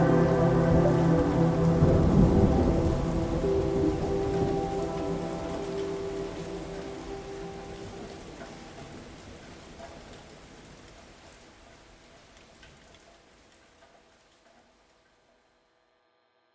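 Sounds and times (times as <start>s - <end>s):
guitar: 0.0s - 8.6s.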